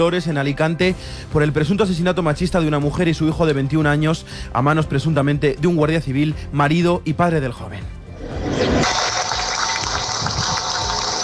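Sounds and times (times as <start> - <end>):
speech: 0.0 - 8.0
applause in Dolores: 8.8 - 11.2.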